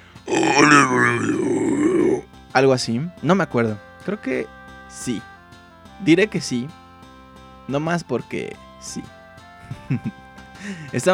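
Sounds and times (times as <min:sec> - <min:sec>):
imitated screamo-style scream: 0:00.3 - 0:02.2
laughter: 0:00.3 - 0:02.2, 0:09.6 - 0:11.1
speech: 0:02.6 - 0:05.3, 0:06.0 - 0:06.8, 0:07.7 - 0:09.2, 0:09.9 - 0:11.1.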